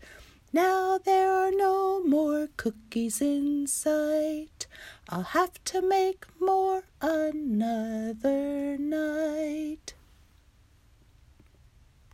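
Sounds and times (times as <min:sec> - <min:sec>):
a cappella singing: 0:00.5 - 0:10.0.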